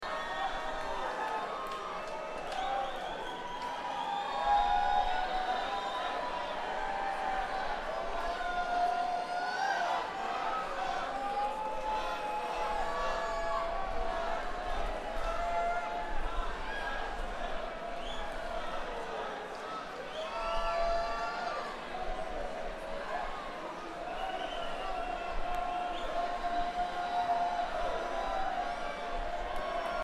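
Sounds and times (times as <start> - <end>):
crowd: 0.0 - 30.0.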